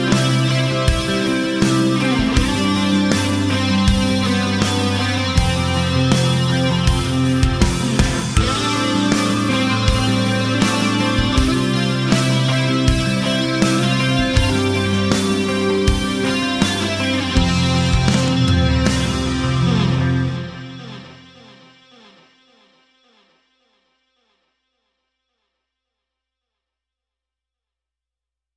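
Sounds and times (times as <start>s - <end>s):
wet 80s rock guitars: 0.0s - 21.4s.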